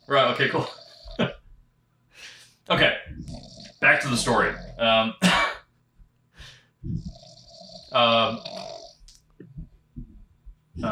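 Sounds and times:
person snoring: 0.0s - 1.4s, 2.8s - 5.2s, 6.5s - 9.0s
speech: 0.1s - 1.3s, 2.7s - 3.0s, 3.8s - 5.4s, 7.9s - 8.5s.

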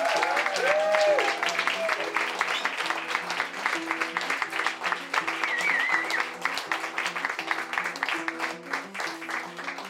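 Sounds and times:
cheers: 0.0s - 3.0s, 5.3s - 6.4s
crowd applause: 0.0s - 9.8s
music: 0.0s - 9.8s.

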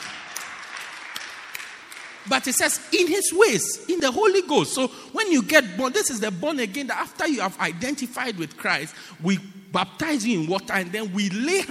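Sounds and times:
audience clapping: 0.0s - 2.6s
speech: 2.3s - 11.6s.

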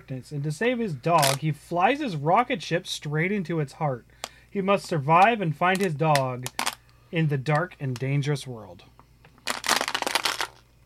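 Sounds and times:
speech: 0.1s - 8.9s
plastic water bottle crunched and crumpled: 5.7s - 6.8s, 9.4s - 10.6s.

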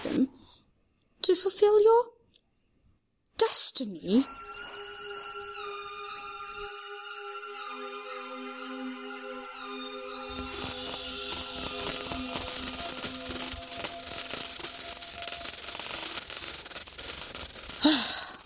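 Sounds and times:
speech: 1.3s - 2.2s, 3.4s - 4.5s
crystalline crackling of Jack Frost: 9.8s - 18.4s.

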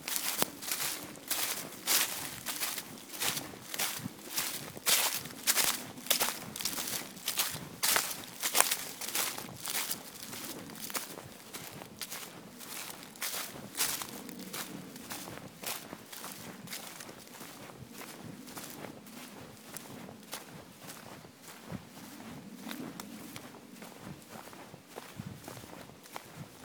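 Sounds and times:
footsteps crunching through a forest in Bergerac, France: 0.0s - 26.6s.

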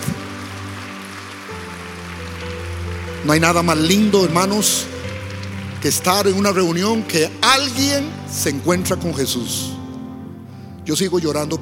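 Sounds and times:
audience applause: 0.0s - 7.8s
speech: 3.2s - 5.0s, 5.8s - 9.8s, 10.9s - 11.5s.

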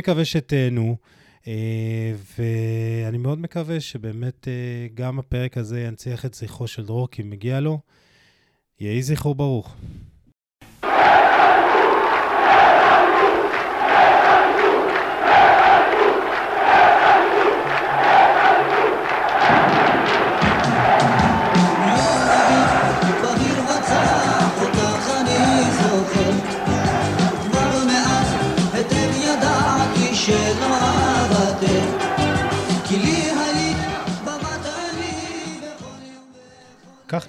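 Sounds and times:
speech: 0.0s - 8.1s, 8.8s - 10.1s
stadium crowd chanting championship cheers: 10.8s - 35.7s.

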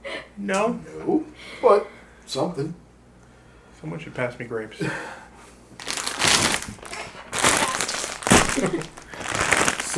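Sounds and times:
speech: 0.4s - 2.8s, 3.8s - 5.2s
plastic bag or wrapper crinkling: 5.8s - 9.9s.

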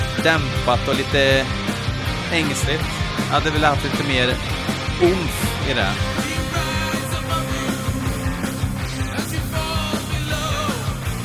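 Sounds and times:
hard rock song with distorted guitars: 0.0s - 11.2s
speech: 0.2s - 1.6s, 2.3s - 6.2s
pounding drums: 0.9s - 11.2s
person singing: 6.1s - 8.4s, 9.0s - 11.0s.

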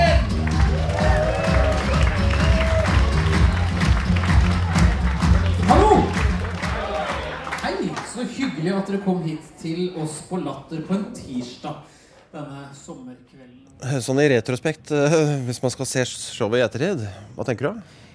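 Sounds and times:
audience applause: 0.1s - 8.7s
cheers and whoops: 0.4s - 3.9s, 5.6s - 7.5s
speech: 8.8s - 18.0s.

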